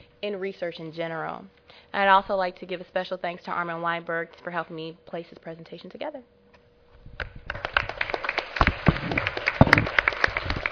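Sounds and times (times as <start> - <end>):
speech: 0.2 - 6.4
round of applause: 7.2 - 10.6.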